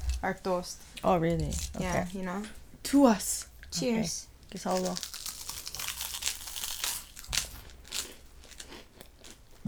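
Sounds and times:
speech: 0:00.2 - 0:05.2
biting into crunchy toast: 0:04.7 - 0:09.6.

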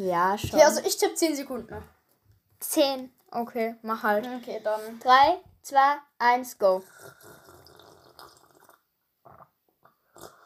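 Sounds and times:
speech: 0:00.0 - 0:02.0, 0:02.6 - 0:07.4
short sharp sips and swallows: 0:06.8 - 0:10.4
slurping and gulping water from a bottle: 0:06.8 - 0:10.4.

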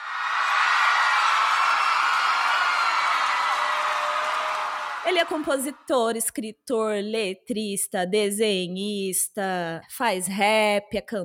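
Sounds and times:
applause added by the production: 0:00.0 - 0:05.8
speech: 0:05.0 - 0:11.2.

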